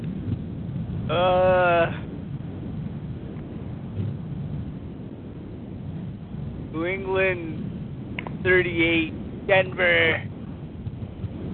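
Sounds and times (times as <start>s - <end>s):
wind blowing: 0.0s - 11.5s
speech: 1.1s - 2.0s, 6.9s - 7.6s, 8.4s - 10.3s.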